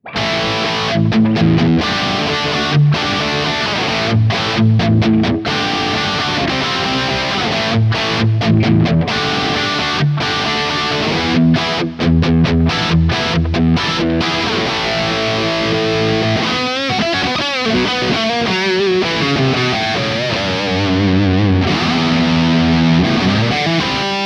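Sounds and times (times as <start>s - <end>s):
high-gain rhythm electric guitar through humbucker pickup: 0.0s - 24.2s.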